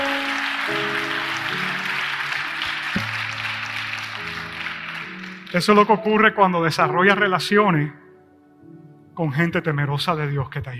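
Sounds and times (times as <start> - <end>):
audience applause: 0.0 - 6.0
speech: 5.5 - 8.0, 9.2 - 10.7.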